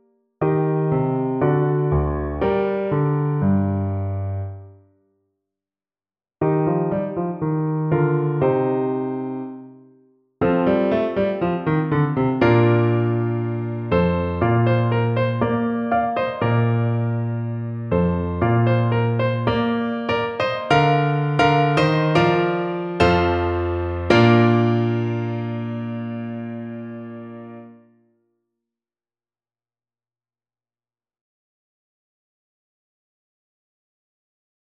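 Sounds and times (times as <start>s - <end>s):
fast piano playing: 0.4s - 4.6s, 6.4s - 9.6s, 10.4s - 27.7s.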